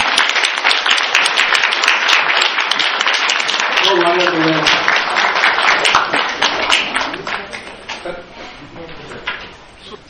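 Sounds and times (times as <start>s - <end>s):
audience applause: 0.0s - 8.0s.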